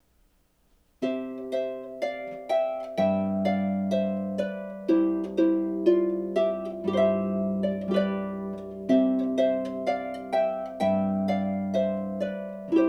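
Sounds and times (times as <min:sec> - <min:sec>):
harp: 0:01.0 - 0:12.8.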